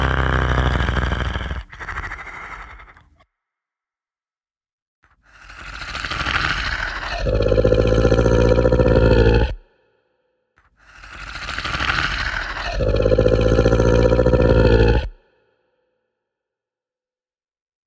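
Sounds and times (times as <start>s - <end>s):
monster sound effects: 0.0s - 3.2s, 5.3s - 9.6s, 10.8s - 15.2s.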